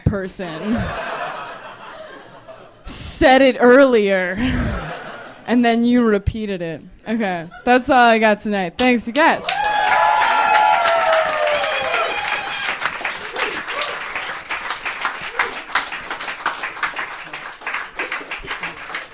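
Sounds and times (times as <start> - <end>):
speech: 0.1 - 1.2, 3.2 - 9.6
laughter: 0.5 - 2.8, 4.4 - 5.4, 17.1 - 19.1
audience clapping: 9.2 - 19.1.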